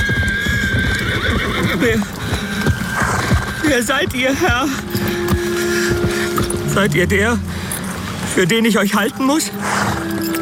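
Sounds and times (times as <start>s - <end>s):
horse neighing: 0.0s - 6.8s
galloping horse hoofbeats: 0.0s - 10.4s
speech: 1.8s - 2.2s, 3.7s - 5.2s, 6.8s - 7.5s, 8.4s - 10.0s.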